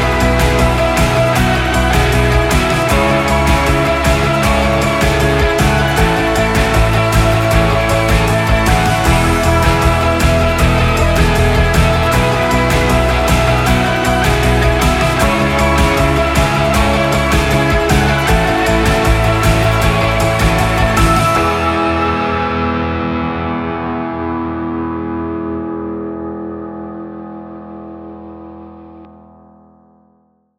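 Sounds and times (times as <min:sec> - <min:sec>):
background music: 0:00.0 - 0:28.1.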